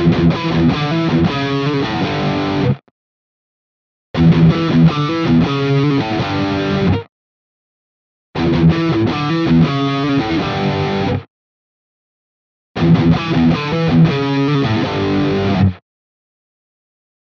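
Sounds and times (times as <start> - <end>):
Ibanez AR520HFM guitar rhythm riff in all pickup positions: 0.0 - 2.9, 4.2 - 7.1, 8.4 - 11.3, 12.8 - 15.8.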